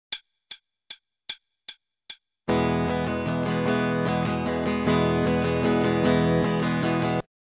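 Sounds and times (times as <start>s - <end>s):
starter guitar rhythm: 2.5s - 7.3s.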